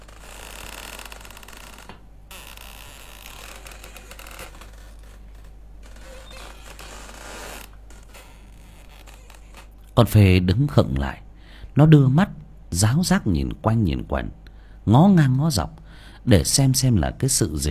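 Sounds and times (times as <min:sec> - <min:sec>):
creaking of a swaying hammock: 0:00.0 - 0:10.0
speech: 0:10.0 - 0:11.2, 0:11.8 - 0:17.6.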